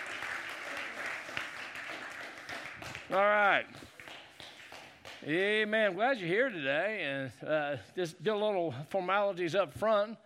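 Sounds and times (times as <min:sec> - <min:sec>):
audience applause: 0:00.0 - 0:05.4
speech: 0:03.1 - 0:03.9, 0:05.2 - 0:10.2.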